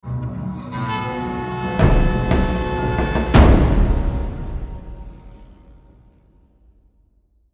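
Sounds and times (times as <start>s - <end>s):
battle horns: 0.1s - 6.2s
intense drums: 0.3s - 6.2s.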